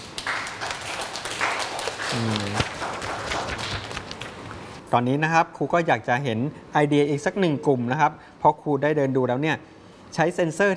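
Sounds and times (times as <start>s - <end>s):
classroom applause for a presenting group: 0.0s - 4.5s
speech: 2.1s - 3.0s, 4.9s - 10.7s.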